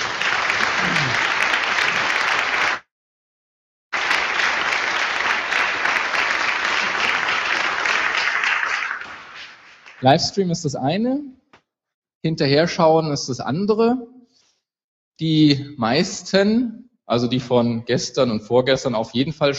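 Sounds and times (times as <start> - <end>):
audience applause at a conference: 0.0 - 2.9, 3.9 - 10.2
speech: 10.0 - 11.4, 12.2 - 14.1, 15.2 - 19.5.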